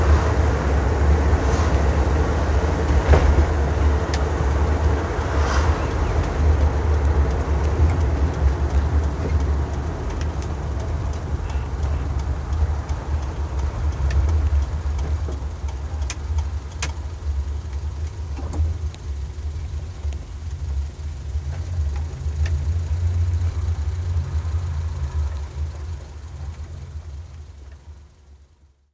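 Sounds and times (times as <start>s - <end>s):
Renault 4 car: 0.0s - 28.9s.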